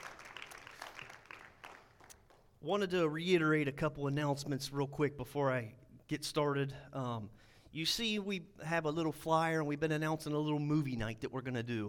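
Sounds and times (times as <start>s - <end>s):
audience applause: 0.0s - 2.4s
speech: 2.6s - 11.8s.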